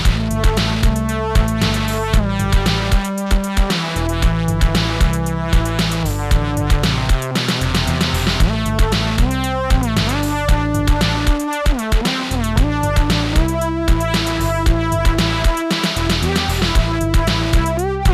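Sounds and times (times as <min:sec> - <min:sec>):
distorted Moog synthesizer: 0:00.0 - 0:18.1
drums playing: 0:00.0 - 0:18.1.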